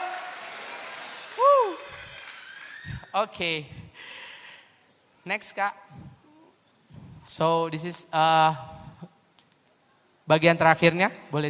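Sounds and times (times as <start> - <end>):
audience clapping and cheering: 0.0 - 3.2
speech: 3.1 - 4.1, 5.2 - 6.0, 7.3 - 8.8, 10.3 - 11.4.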